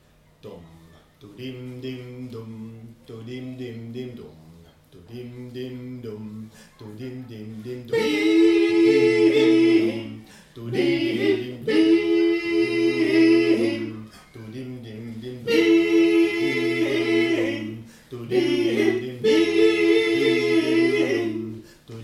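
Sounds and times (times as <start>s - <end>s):
powwow drumming and singing: 6.8s - 22.0s.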